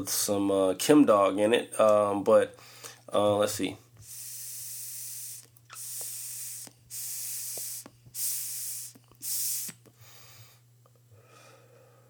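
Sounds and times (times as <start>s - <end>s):
speech: 0.0s - 3.8s
vape pen being puffed: 4.0s - 10.6s.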